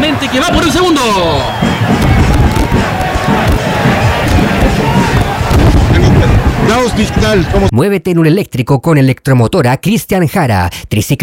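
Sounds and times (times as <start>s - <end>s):
stadium crowd applauding: 0.0s - 7.7s
speech: 0.2s - 2.1s, 6.7s - 11.2s.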